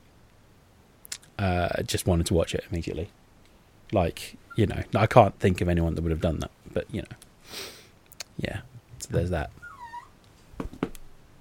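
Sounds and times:
speech: 0:01.4 - 0:03.2, 0:03.9 - 0:07.8, 0:08.4 - 0:09.6
dog yelping while playing: 0:09.6 - 0:10.2.

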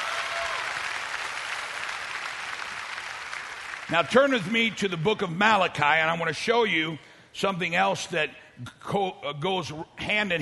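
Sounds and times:
audience clapping: 0:00.0 - 0:04.5
speech: 0:03.9 - 0:10.4.

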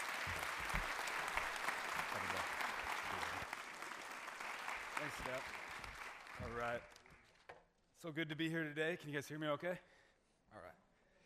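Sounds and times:
audience applause welcoming a guest speaker: 0:00.0 - 0:07.3
speech: 0:05.1 - 0:05.7, 0:06.4 - 0:07.0, 0:08.0 - 0:10.8.

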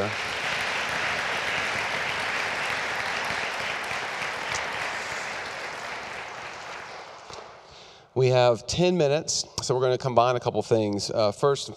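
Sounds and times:
audience applause: 0:00.0 - 0:07.6
speech: 0:08.2 - 0:11.7.

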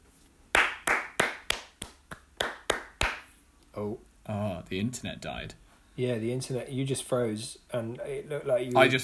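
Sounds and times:
one person clapping hands: 0:00.5 - 0:03.3
speech: 0:03.8 - 0:09.0.

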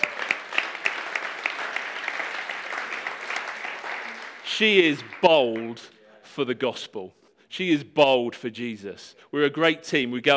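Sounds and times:
audience applause: 0:00.0 - 0:05.8
speech: 0:04.6 - 0:10.3.

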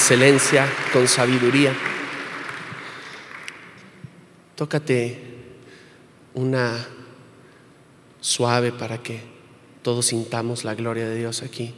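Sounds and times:
audience applause: 0:00.0 - 0:03.8
speech: 0:00.1 - 0:01.9, 0:04.6 - 0:05.3, 0:06.4 - 0:07.0, 0:08.2 - 0:11.7.

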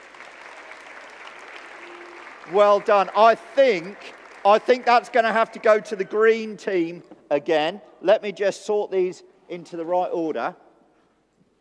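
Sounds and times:
children's applause: 0:00.0 - 0:06.2
speech: 0:02.5 - 0:10.6.

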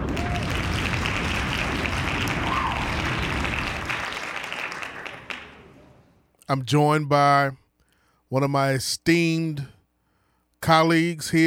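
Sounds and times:
hand claps: 0:00.0 - 0:05.6
speech: 0:06.5 - 0:07.6, 0:08.3 - 0:09.7, 0:10.6 - 0:11.4.

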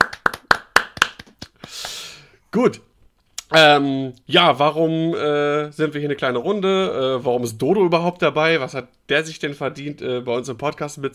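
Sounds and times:
hand clapping: 0:00.0 - 0:02.0
speech: 0:02.6 - 0:02.9, 0:03.5 - 0:11.1.

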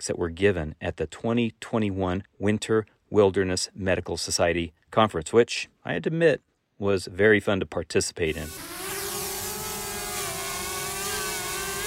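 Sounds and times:
speech: 0:00.0 - 0:08.7
drone buzzing in flight: 0:08.4 - 0:11.8.

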